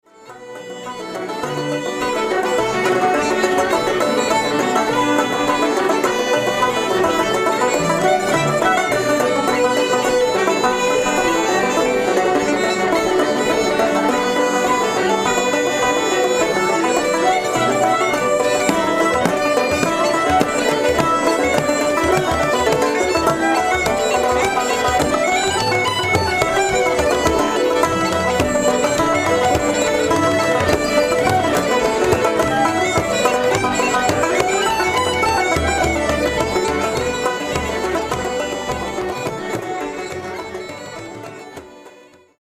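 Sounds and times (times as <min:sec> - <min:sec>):
Irish session music: 0:00.0 - 0:42.4.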